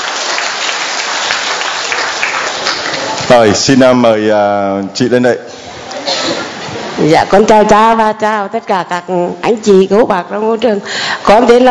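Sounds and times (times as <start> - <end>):
audience applause: 0.0 - 3.8
speech: 3.3 - 5.6, 7.0 - 11.6.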